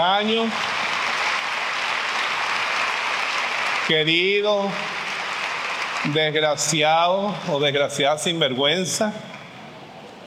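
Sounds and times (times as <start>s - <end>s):
speech: 0.0s - 0.8s, 3.9s - 5.0s, 6.0s - 9.3s
audience applause: 0.0s - 6.8s.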